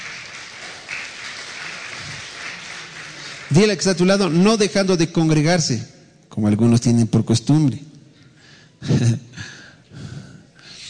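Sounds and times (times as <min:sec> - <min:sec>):
audience applause: 0:00.0 - 0:04.1
speech: 0:03.5 - 0:07.9, 0:08.8 - 0:09.3.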